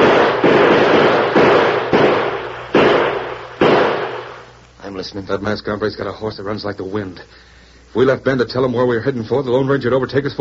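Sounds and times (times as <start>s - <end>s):
gunshots fired out a window: 0.0s - 4.6s
speech: 5.0s - 10.4s.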